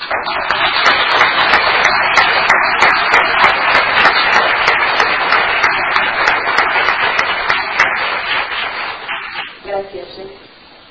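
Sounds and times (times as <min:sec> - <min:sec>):
sustained audience applause: 0:00.0 - 0:09.6.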